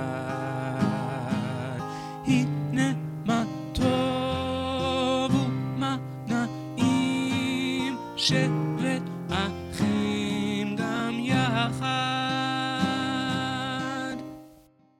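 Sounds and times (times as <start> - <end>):
person singing: 0.0 - 14.5.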